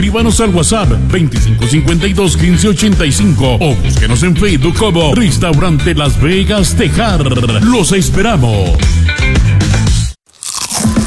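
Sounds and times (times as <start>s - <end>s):
speech: 0.0s - 9.3s
person biting into crispy chips: 10.3s - 11.0s.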